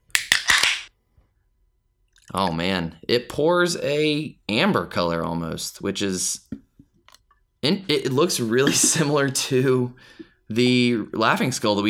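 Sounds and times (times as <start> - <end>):
beer can being cracked open: 0.1 - 0.9
speech: 2.3 - 6.6, 7.6 - 11.8.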